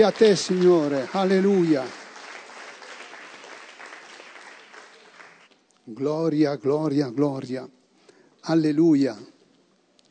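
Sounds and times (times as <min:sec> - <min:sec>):
speech: 0:00.0 - 0:02.0, 0:05.9 - 0:07.8, 0:08.4 - 0:09.3
audience applause: 0:00.0 - 0:05.5.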